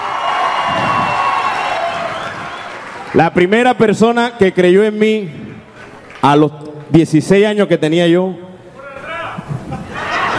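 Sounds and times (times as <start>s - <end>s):
audience applause: 0.0s - 3.1s
speech: 3.1s - 5.4s, 6.2s - 8.4s
laughter: 9.3s - 10.3s.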